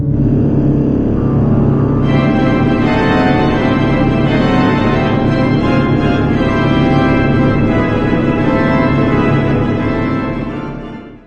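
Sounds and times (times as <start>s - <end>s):
bagpipe: 0.2s - 11.2s.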